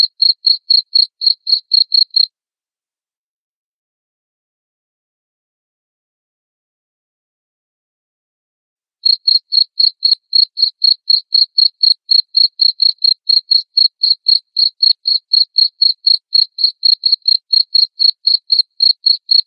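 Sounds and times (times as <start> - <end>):
cricket chirping: 0.0 - 2.3, 9.1 - 19.4.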